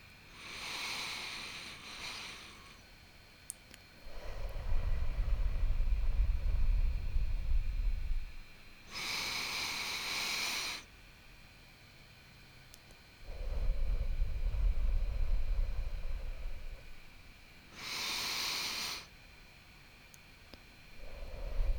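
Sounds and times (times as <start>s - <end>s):
slow deep breathing in through the nose and out through the mouth: 0.3s - 2.9s, 4.0s - 10.9s, 13.2s - 19.1s, 20.9s - 21.7s.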